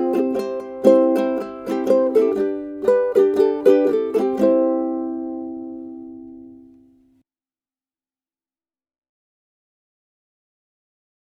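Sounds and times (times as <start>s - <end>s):
ukulele: 0.0s - 7.2s.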